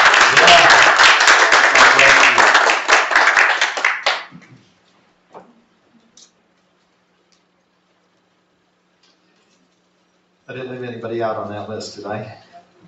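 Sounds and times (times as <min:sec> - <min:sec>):
audience clapping for a congratulated woman: 0:00.0 - 0:04.5
speech: 0:11.2 - 0:12.4.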